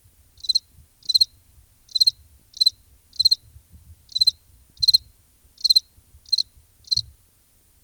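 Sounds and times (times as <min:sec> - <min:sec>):
cricket chirping: 0:00.4 - 0:01.3, 0:01.9 - 0:03.4, 0:04.1 - 0:05.0, 0:05.6 - 0:07.0.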